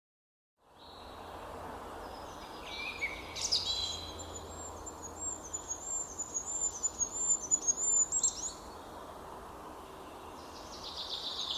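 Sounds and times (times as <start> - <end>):
goldcrest singing thin high-pitched phrases: 0.7 - 11.5.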